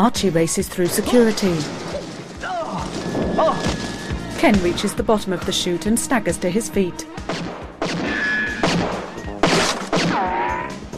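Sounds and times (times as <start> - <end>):
speech: 0.0 - 2.0, 4.4 - 7.5
gunshots: 0.8 - 4.1, 7.2 - 10.9.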